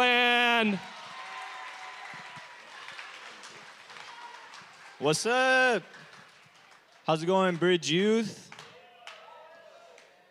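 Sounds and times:
audience applause at a youth gathering: 0.0 - 7.7
speech: 0.6 - 0.9, 5.0 - 6.1, 7.1 - 8.5.

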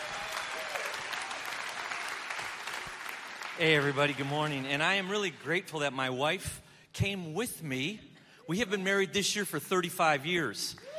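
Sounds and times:
audience applauding a guest preacher's wife at a church service: 0.0 - 5.5
speech: 3.6 - 10.8.

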